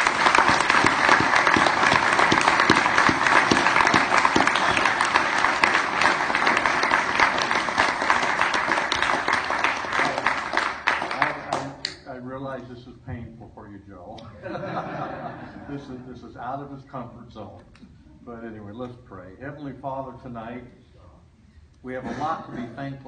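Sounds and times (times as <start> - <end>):
audience applause: 0.0 - 11.8
laughter: 14.2 - 16.1
speech: 15.7 - 20.8, 21.8 - 23.0.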